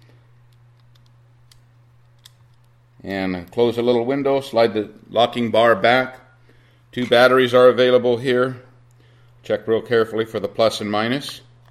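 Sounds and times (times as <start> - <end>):
micro SD card clicking into a Garmin 60CX GPS device: 0.0 - 3.7
steady low electrical hum: 0.0 - 11.6
speech: 3.0 - 6.2, 6.9 - 8.7, 9.4 - 11.5.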